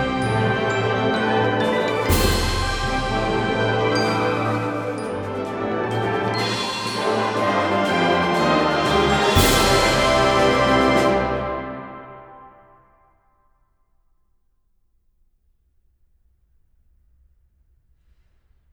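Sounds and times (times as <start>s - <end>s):
festive fanfare: 0.0s - 12.7s.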